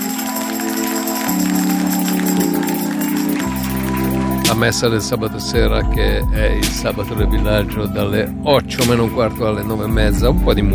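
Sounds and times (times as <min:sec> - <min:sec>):
audience applause on a Saturday radio show: 0:00.0 - 0:05.0
steady music chords: 0:00.0 - 0:10.7
speech: 0:04.5 - 0:10.7.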